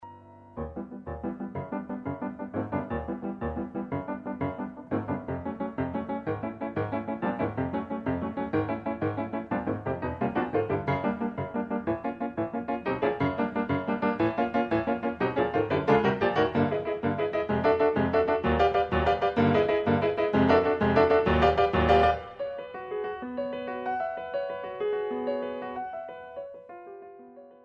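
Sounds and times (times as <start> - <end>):
solo piano intermezzo: 0.0 - 27.6.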